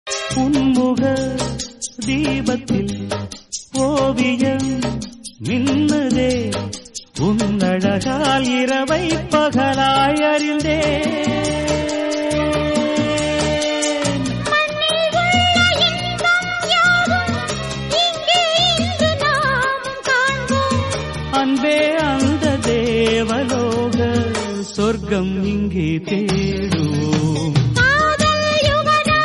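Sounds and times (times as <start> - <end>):
Tamil background music: 0.1 - 29.2.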